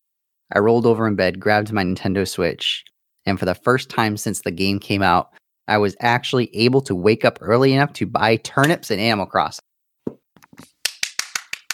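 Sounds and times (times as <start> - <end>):
speech: 0.5 - 10.7
slow hand clapping: 10.5 - 11.7.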